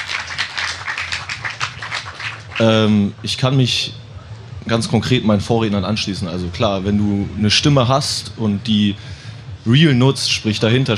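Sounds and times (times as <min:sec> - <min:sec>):
audience applause: 0:00.0 - 0:02.9
speech: 0:02.6 - 0:04.0, 0:04.6 - 0:10.9.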